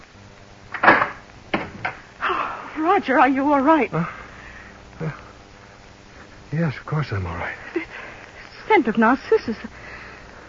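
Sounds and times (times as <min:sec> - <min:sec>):
door opening: 0:00.7 - 0:02.0
speech: 0:02.8 - 0:04.2, 0:05.0 - 0:05.2, 0:06.5 - 0:08.0, 0:08.7 - 0:09.8.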